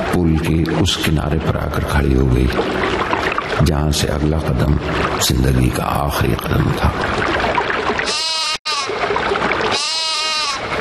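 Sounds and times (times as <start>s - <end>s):
speech: 0.2s - 7.5s
lamb bleating: 8.1s - 8.9s, 9.7s - 10.6s.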